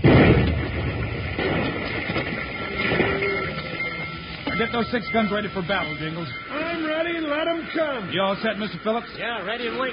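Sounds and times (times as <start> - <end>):
dynamite explosion after lit fuse: 0.0 - 4.6
long rough rumble: 0.0 - 8.2
speech: 4.6 - 9.9.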